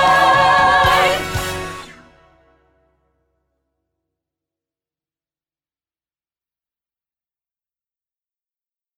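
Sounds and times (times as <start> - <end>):
soprano singing a rehearsal track: 0.0 - 1.9.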